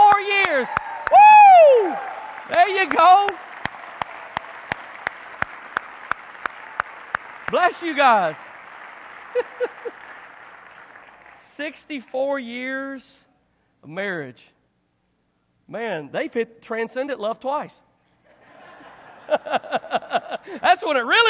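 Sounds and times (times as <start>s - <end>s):
audience applause: 0.0s - 11.5s
speech: 7.5s - 8.5s, 9.4s - 10.0s, 11.6s - 14.6s, 15.7s - 17.9s, 19.3s - 21.2s
laughter: 9.2s - 10.2s, 18.3s - 20.6s.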